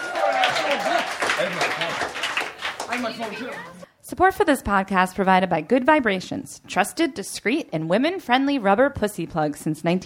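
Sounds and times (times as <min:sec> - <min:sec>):
voices whooping and calling out: 0:00.0 - 0:01.1
audience applause: 0:00.0 - 0:03.8
speech: 0:03.0 - 0:10.0.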